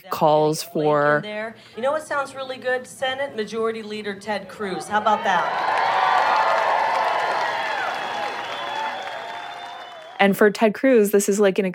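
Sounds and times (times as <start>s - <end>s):
speech: 0.0s - 6.1s, 10.2s - 11.7s
crowd cheering at rally: 4.5s - 10.3s.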